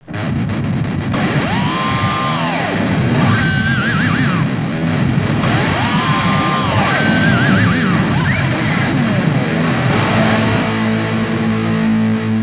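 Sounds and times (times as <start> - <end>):
rock music ringtone: 0.1 - 12.4.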